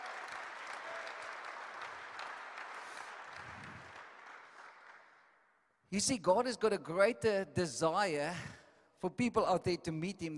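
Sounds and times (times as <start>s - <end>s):
audience clapping: 0.0s - 5.6s
speech: 5.9s - 10.3s.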